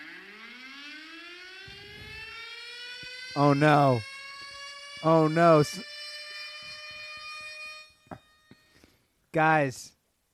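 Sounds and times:
shrill electronic alarm tone: 0:00.0 - 0:09.1
speech: 0:03.4 - 0:04.1, 0:05.0 - 0:05.9, 0:09.3 - 0:10.0.

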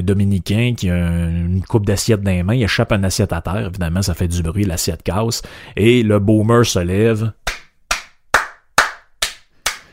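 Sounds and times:
speech: 0:00.0 - 0:07.4
hand clapping: 0:07.5 - 0:09.9.

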